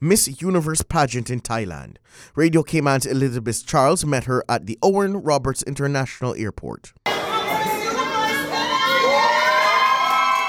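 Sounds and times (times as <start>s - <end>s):
speech: 0.0s - 7.0s
family, friends and supporters cheering in airport arrivals hall: 7.1s - 10.4s.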